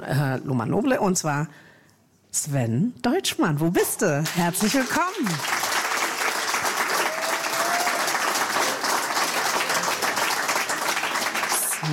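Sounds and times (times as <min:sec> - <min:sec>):
speech: 0:00.0 - 0:01.7, 0:02.3 - 0:05.6
audience clapping to welcome a guest onto the stage: 0:04.2 - 0:11.9.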